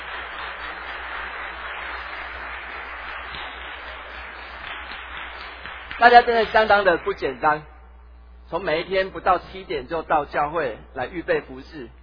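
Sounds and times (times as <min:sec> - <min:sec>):
audience applause: 0:00.0 - 0:07.3
speech: 0:06.0 - 0:07.7, 0:08.5 - 0:12.0.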